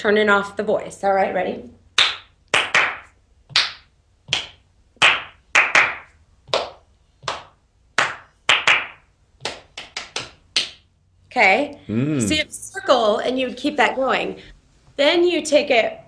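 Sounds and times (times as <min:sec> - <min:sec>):
speech: 0:00.0 - 0:01.8, 0:11.4 - 0:16.0
hands clapping a rhythm: 0:02.0 - 0:10.9.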